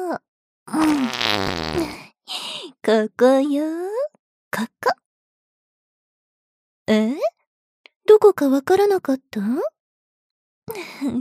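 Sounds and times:
long buzzing fart: 0.8s - 2.0s
speech: 2.9s - 3.8s, 4.6s - 5.0s, 6.9s - 7.4s, 8.1s - 9.8s, 10.7s - 11.1s.

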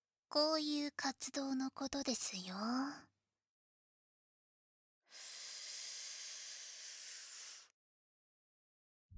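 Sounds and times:
speech: 0.4s - 3.1s
breath blown into the ear: 5.1s - 7.7s.

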